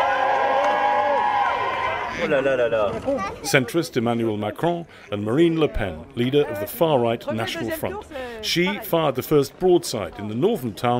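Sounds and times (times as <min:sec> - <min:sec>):
crowd of supporters cheering: 0:00.0 - 0:03.2
speech: 0:02.2 - 0:10.9.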